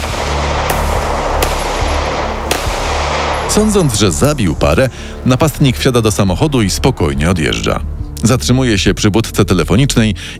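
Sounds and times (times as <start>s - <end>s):
gunshots: 0.0s - 4.9s
speech: 3.6s - 10.3s.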